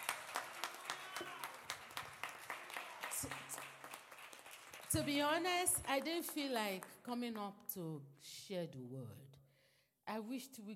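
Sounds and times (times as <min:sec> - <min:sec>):
audience clapping: 0:00.0 - 0:07.1
speech: 0:04.9 - 0:09.3, 0:10.1 - 0:10.7.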